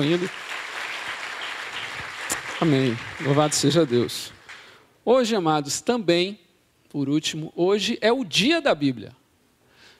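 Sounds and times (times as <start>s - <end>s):
speech: 0.0s - 0.4s, 2.6s - 4.4s, 5.0s - 9.2s
audience applause: 0.0s - 4.8s.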